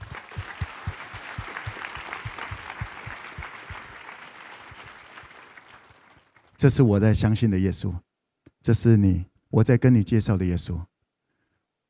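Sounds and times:
audience applause: 0:00.0 - 0:06.5
speech: 0:06.6 - 0:10.9.

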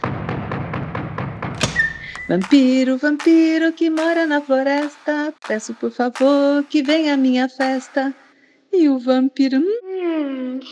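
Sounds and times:
knocking on a door: 0:01.6 - 0:08.2
speech: 0:02.3 - 0:10.7.

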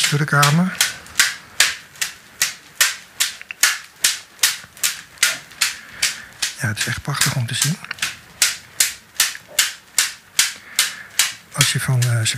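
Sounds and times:
whip striking buttocks: 0:00.0 - 0:12.3
speech: 0:00.1 - 0:00.8, 0:06.6 - 0:08.0, 0:11.6 - 0:12.3.

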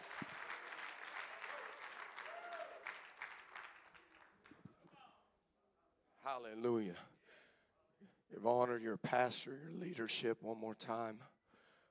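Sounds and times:
audience hand clapping: 0:00.0 - 0:04.7
speech: 0:06.3 - 0:07.2, 0:08.3 - 0:11.3.

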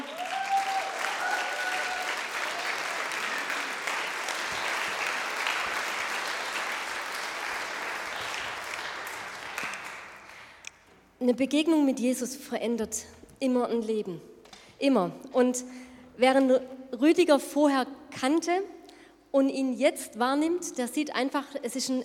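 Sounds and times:
audience applause: 0:00.0 - 0:10.6
speech: 0:11.2 - 0:22.0.

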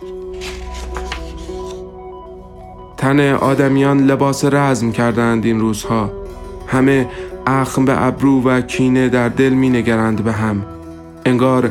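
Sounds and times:
page being turned: 0:00.0 - 0:01.9
faint tonal background: 0:00.0 - 0:11.6
speech: 0:03.0 - 0:11.6.

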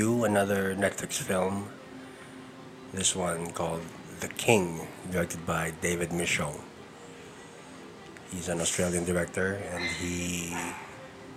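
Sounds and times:
speech: 0:00.0 - 0:01.8, 0:02.9 - 0:06.7, 0:08.3 - 0:10.8
dog barking in the neighborhood: 0:09.8 - 0:11.0.

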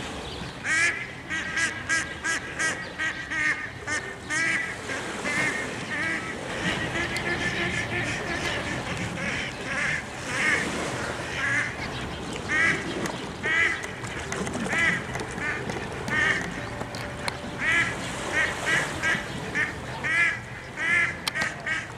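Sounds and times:
ducks quacking: 0:00.6 - 0:21.9.

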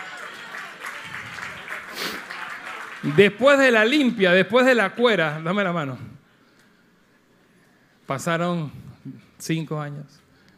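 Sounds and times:
crowd applause: 0:00.0 - 0:04.1
speech: 0:03.0 - 0:06.1, 0:08.1 - 0:10.2.

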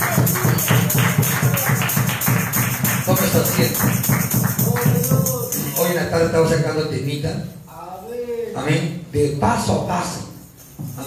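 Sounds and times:
audience clapping: 0:00.0 - 0:05.8
speech: 0:03.4 - 0:04.2, 0:06.1 - 0:07.6, 0:08.6 - 0:10.2.

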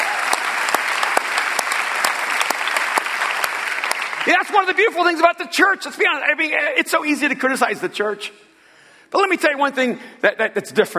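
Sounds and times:
audience applause: 0:00.0 - 0:05.0
speech: 0:04.2 - 0:08.5, 0:09.1 - 0:10.9.

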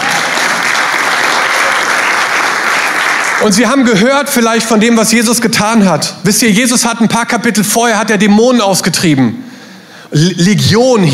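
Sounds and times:
audience applause: 0:00.0 - 0:03.9
speech: 0:03.4 - 0:11.1.

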